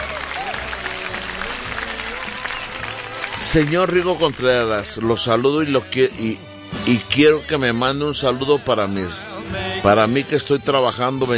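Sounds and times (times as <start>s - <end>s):
crowd applauding: 0.0s - 5.9s
speech: 3.5s - 11.3s.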